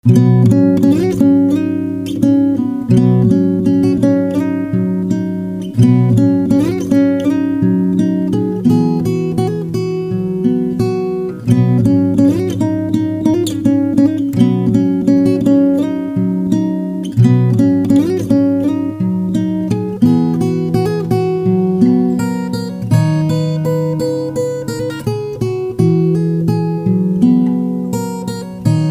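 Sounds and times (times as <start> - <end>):
guitar: 0.0 - 28.8.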